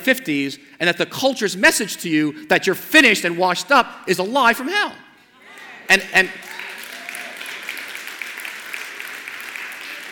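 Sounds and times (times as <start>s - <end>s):
speech: 0.0s - 5.1s, 5.9s - 6.5s
audience clapping: 6.4s - 10.1s.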